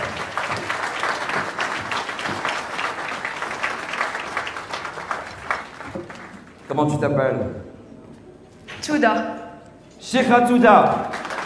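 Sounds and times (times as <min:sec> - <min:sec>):
audience applause: 0:00.0 - 0:06.6, 0:10.9 - 0:11.4
speech: 0:06.8 - 0:07.7, 0:08.9 - 0:09.4, 0:10.0 - 0:11.1.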